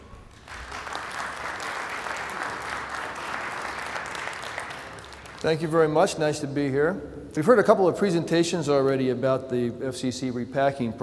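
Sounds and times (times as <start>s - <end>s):
audience applause welcoming a speaker at a broadcast transmitter engineering presentation: 0.0s - 5.6s
speech: 5.4s - 11.0s.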